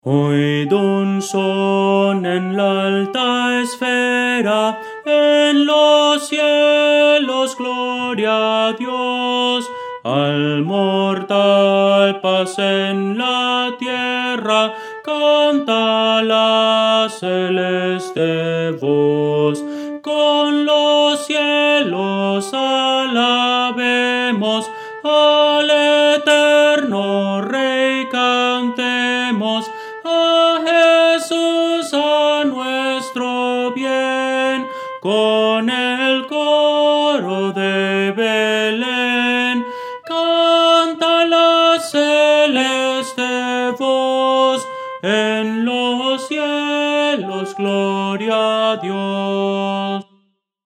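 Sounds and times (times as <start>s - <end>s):
soprano singing: 0.0s - 50.1s.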